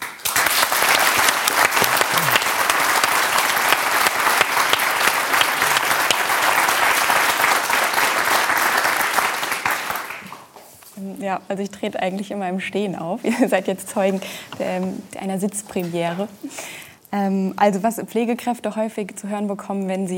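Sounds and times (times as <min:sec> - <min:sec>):
crowd clapping: 0:00.0 - 0:10.6
laughter: 0:01.8 - 0:02.8
speech: 0:11.3 - 0:20.1.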